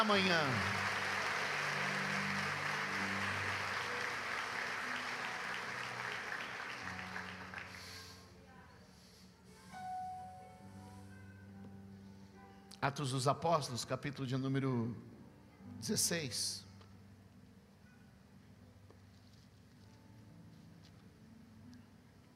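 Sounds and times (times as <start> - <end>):
speech: 0.0 - 0.8, 12.8 - 16.7
audience applause: 0.0 - 8.2.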